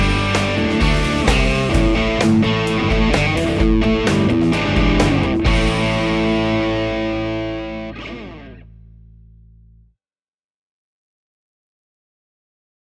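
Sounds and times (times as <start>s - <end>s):
distorted Stratocaster electric guitar on bridge pickup: 0.0s - 9.8s.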